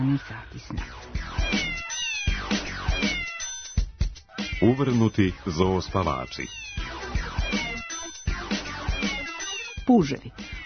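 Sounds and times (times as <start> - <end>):
speech: 0.0 - 1.9, 4.6 - 6.8, 9.9 - 10.6
domestic cat meowing: 1.4 - 3.6, 4.3 - 5.2, 5.9 - 10.6.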